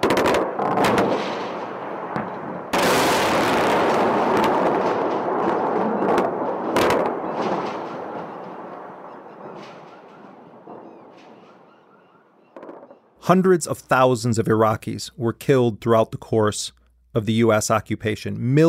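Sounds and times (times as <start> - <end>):
sharp blasts from US airstrikes on Iraq: 0.0 - 11.4
explosions and heavy fire from massive US airstrikes on Iraq: 0.0 - 11.7
speech: 13.3 - 18.6.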